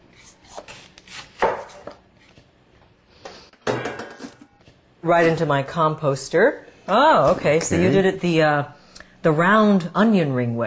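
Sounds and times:
knife dicing butternut squash on a cutting board: 0.6 - 2.0
speech: 5.0 - 10.6.

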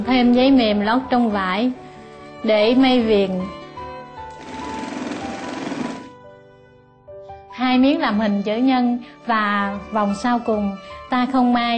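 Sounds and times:
speech: 0.0 - 1.8, 2.4 - 3.6, 7.7 - 11.7
sewing machine stitching a hem: 4.3 - 6.2.

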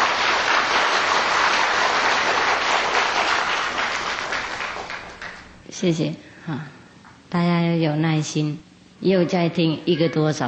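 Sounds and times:
audience applause: 0.0 - 5.6
speech: 5.8 - 10.4.

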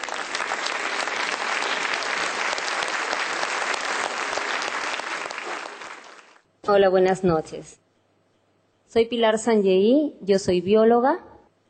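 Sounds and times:
audience applauding to welcome a guest speaker: 0.0 - 6.4
speech: 6.7 - 7.8, 8.9 - 11.3.

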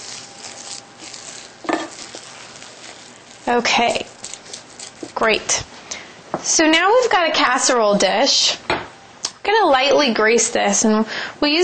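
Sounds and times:
millet being mixed with nutritional yeast, stirring strokes: 0.0 - 5.6
speech: 3.5 - 4.1, 5.2 - 5.7, 6.3 - 8.6, 9.5 - 11.6.

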